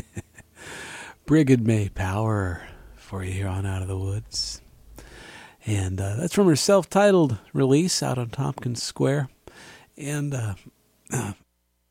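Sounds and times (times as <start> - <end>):
speech: 1.3 - 4.6, 5.6 - 11.4
person coughing: 11.1 - 11.4.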